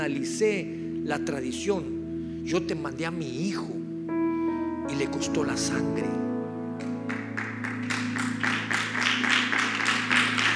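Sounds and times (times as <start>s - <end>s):
speech: 0.0s - 3.8s, 4.9s - 6.3s
audience applause building into rhythmic clapping: 6.8s - 10.5s.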